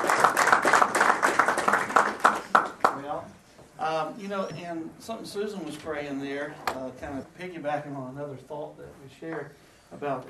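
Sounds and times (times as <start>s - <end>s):
crowd applause: 0.0s - 3.0s
speech: 4.2s - 10.2s.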